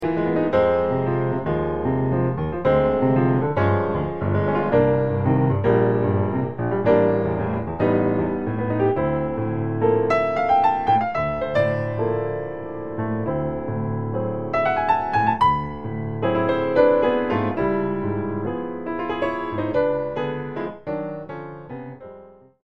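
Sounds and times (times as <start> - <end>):
piano melody: 0.0 - 22.6.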